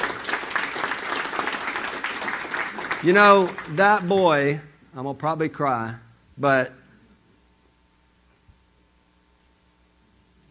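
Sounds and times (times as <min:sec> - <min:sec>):
audience applause: 0:00.0 - 0:04.2
speech: 0:03.0 - 0:06.8.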